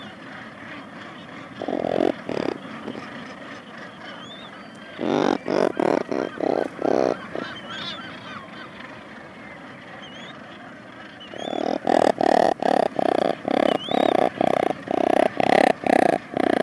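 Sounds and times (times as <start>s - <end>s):
razorbill giving rough pulsed growls: 1.5s - 3.3s, 5.0s - 7.6s, 11.4s - 16.6s.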